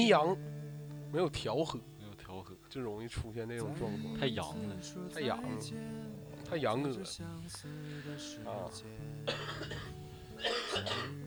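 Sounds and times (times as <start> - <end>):
speech: 0.0 - 0.5, 1.1 - 11.2
cough: 9.3 - 11.2.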